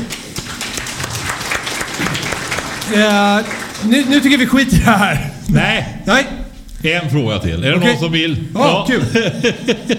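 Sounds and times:
audience applause: 0.0 - 5.4
speech: 2.9 - 9.9
laughter: 3.0 - 5.5, 7.8 - 9.9.

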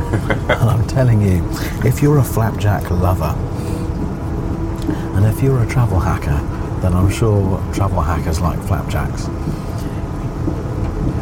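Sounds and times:
laughter: 0.0 - 1.1
train picking up speed on main line: 0.0 - 11.2
speech: 0.1 - 3.7, 4.9 - 9.6.

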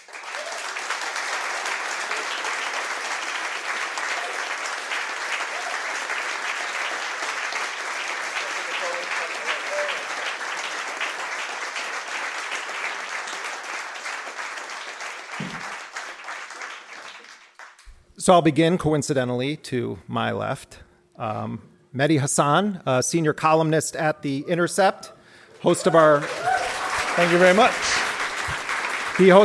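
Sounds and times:
audience applause welcoming a guest at an evening event: 0.0 - 18.0, 25.7 - 29.4
speech: 18.3 - 26.5, 27.2 - 27.9, 29.2 - 29.4.

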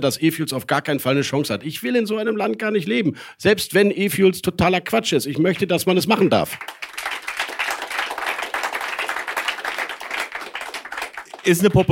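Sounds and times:
speech: 0.0 - 6.8, 11.4 - 11.8
audience applause: 6.6 - 11.8.

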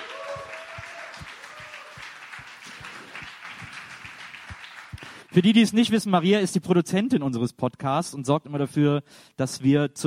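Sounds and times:
audience applause: 0.0 - 5.8
speech: 5.3 - 10.0.

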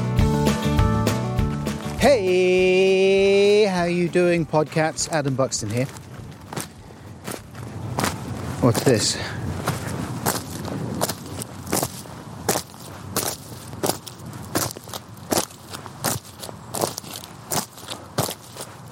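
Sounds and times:
big clumpy walking boots stomping on field stubble: 0.2 - 18.9
speech: 2.0 - 2.8, 3.7 - 6.1, 8.6 - 9.5.

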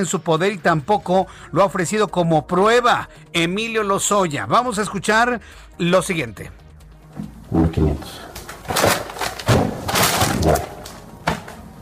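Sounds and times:
speech: 0.0 - 6.6, 7.2 - 9.0, 10.4 - 10.7
stacks of cash being placed on a table: 8.1 - 11.8.

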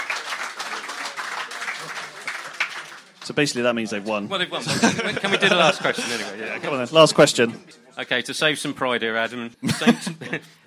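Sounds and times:
small group round of applause: 0.0 - 3.6
speech: 3.2 - 10.6
laughter: 4.5 - 6.8, 9.6 - 10.6.

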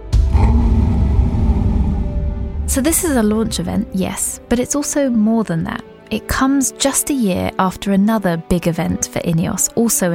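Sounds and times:
lion roaring at the end of a promo video: 0.1 - 2.8
speech: 2.7 - 10.1.

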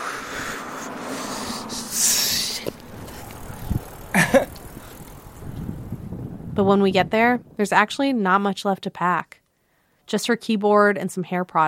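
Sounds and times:
bicycles rolling along with road noise: 0.0 - 8.0
speech: 6.6 - 9.4, 10.1 - 11.6.

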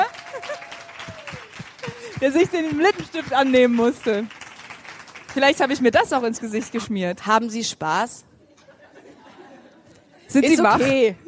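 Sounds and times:
festival audience applause: 0.0 - 6.3
speech: 2.2 - 4.4, 5.4 - 8.3, 10.3 - 11.2.

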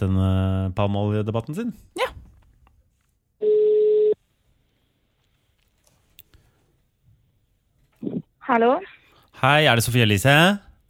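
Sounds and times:
speech: 0.0 - 2.1, 8.0 - 10.7
telephone call ringing tone: 3.4 - 4.2.

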